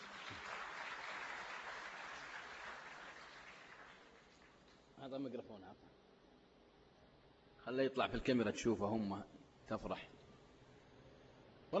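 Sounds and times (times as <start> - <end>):
faint audience clapping for a young boy at a gathering: 0.0 - 5.0
speech: 5.0 - 6.0, 7.7 - 10.2.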